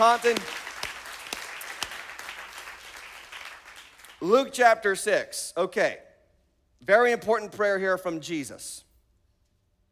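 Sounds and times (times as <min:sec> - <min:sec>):
speech: 0:00.0 - 0:00.6, 0:04.2 - 0:06.1, 0:06.8 - 0:08.9
church congregation in North Attleboro applauding: 0:00.0 - 0:04.5.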